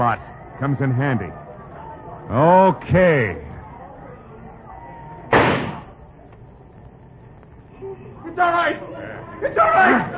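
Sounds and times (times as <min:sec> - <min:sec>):
speech: 0:00.1 - 0:01.4, 0:02.3 - 0:03.5, 0:08.4 - 0:10.1
gunshot: 0:05.3 - 0:06.0.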